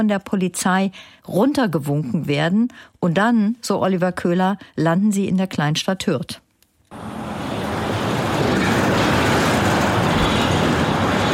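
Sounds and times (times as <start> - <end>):
speech: 0.0 - 7.2
loud truck traffic on the main street of Hürth near Cologne: 6.9 - 11.3.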